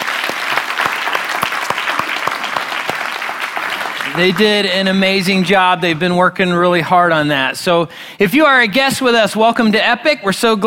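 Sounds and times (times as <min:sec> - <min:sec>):
crowd clapping: 0:00.0 - 0:06.0
speech: 0:04.1 - 0:10.6.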